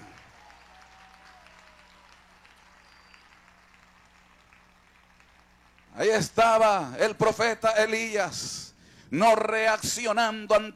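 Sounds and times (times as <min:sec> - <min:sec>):
audience applauding: 0:00.0 - 0:06.0
speech: 0:06.0 - 0:10.7.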